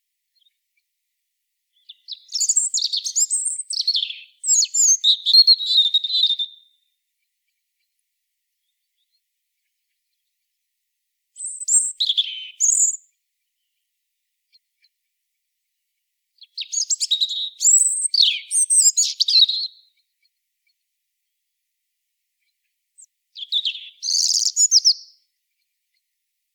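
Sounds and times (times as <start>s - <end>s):
European robin singing: 1.7s - 6.9s, 11.4s - 13.9s, 16.4s - 20.0s, 23.0s - 25.3s.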